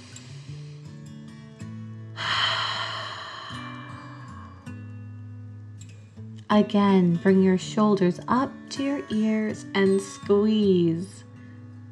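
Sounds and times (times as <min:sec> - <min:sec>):
deep dragon breath during a guided breathing exercise: 0:00.0 - 0:01.0, 0:02.2 - 0:04.8
speech: 0:06.5 - 0:11.2.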